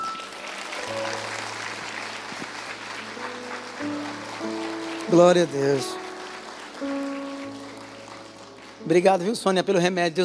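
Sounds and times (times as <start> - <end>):
audience applause: 0.0 - 9.9
sustained keyboard chords: 2.2 - 10.2
speech: 5.1 - 6.0, 8.9 - 10.2.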